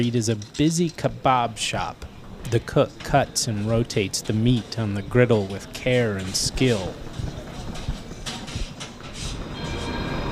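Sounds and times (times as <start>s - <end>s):
speech: 0.0s - 7.1s
modern light rail cars gliding along track in the roadways: 6.2s - 10.2s.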